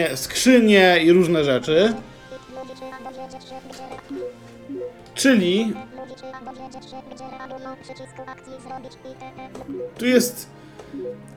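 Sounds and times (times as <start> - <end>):
speech: 0.0 - 2.1, 2.7 - 4.4, 5.2 - 11.3
video game interaction cue sound: 1.9 - 10.2.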